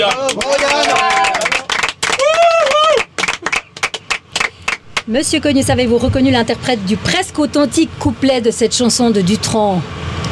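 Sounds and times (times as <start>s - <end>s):
speech: 0.0s - 0.9s, 5.1s - 10.1s
audience applause: 0.0s - 5.2s.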